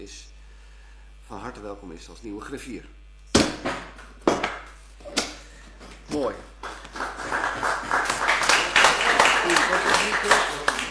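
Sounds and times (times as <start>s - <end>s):
speech: 0.0s - 0.3s, 1.3s - 3.6s, 6.1s - 6.5s, 9.7s - 10.6s
audience applause: 6.6s - 10.8s.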